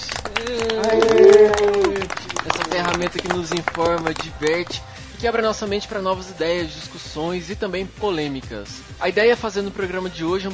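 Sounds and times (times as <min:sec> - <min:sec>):
applause: 0:00.0 - 0:04.8
speech: 0:00.4 - 0:01.2, 0:03.0 - 0:10.5.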